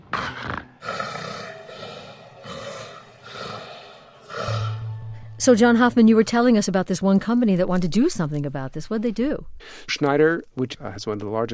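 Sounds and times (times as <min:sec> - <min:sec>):
sleep apnea snoring and choking: 0:00.2 - 0:04.8
speech: 0:05.4 - 0:11.5.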